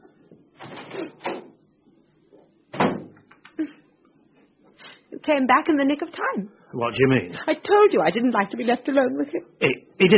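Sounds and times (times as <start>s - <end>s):
low noise: 0.0s - 10.1s
door shutting thud: 2.7s - 3.3s
speech: 5.3s - 10.1s.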